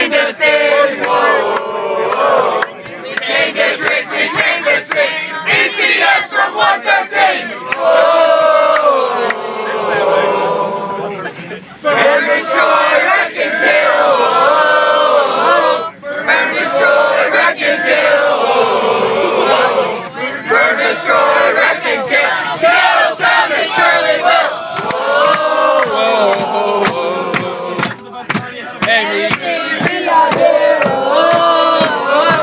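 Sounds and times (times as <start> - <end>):
drunk people singing on a bus: 0.0 - 32.4.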